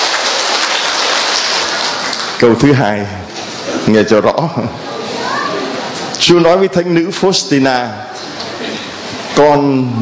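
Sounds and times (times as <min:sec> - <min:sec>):
crowd applauding: 0:00.0 - 0:02.6
speech: 0:02.4 - 0:03.3, 0:03.9 - 0:04.9, 0:06.2 - 0:08.4, 0:09.4 - 0:09.9.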